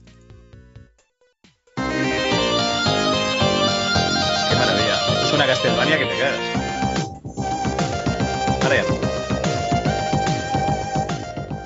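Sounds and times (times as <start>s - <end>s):
retro video game soundtrack music: 1.8s - 11.6s
speech: 5.4s - 6.6s, 8.7s - 9.1s.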